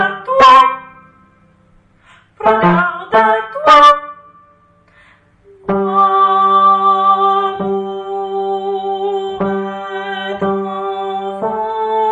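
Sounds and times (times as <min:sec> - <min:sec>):
habanera bass line: 0:00.0 - 0:01.2, 0:02.4 - 0:04.2, 0:05.6 - 0:08.6, 0:09.4 - 0:12.0.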